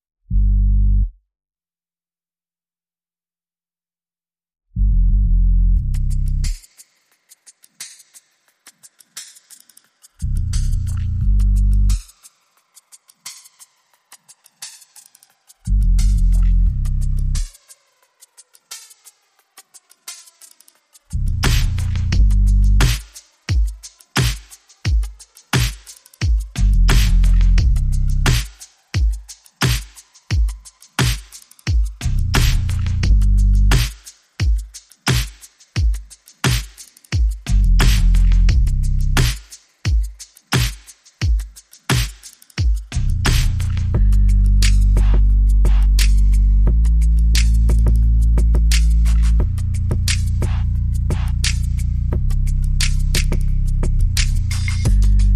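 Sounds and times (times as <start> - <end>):
bass: 0.2 - 1.2, 4.8 - 6.6, 10.2 - 12.0, 15.7 - 17.5, 21.1 - 23.0, 26.6 - 28.4, 32.0 - 33.9, 37.5 - 39.3, 43.0 - 55.3
drums: 5.9 - 55.3.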